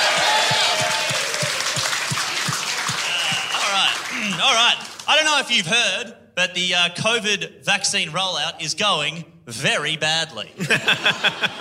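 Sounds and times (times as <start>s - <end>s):
audience applauding: 0.0s - 5.2s
speech: 4.5s - 11.5s
laughter: 10.6s - 11.5s.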